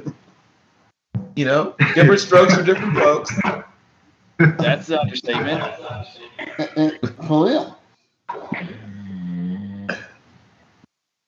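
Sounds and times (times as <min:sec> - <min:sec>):
speech: 0:01.4 - 0:03.7, 0:04.4 - 0:08.7
laughter: 0:01.5 - 0:03.6, 0:04.4 - 0:07.6
large dog snoring: 0:08.8 - 0:10.0.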